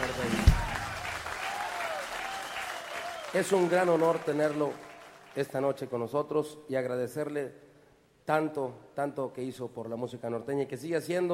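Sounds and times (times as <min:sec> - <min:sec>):
audience applause: 0:00.0 - 0:05.4
speech: 0:03.3 - 0:07.6, 0:08.3 - 0:11.3.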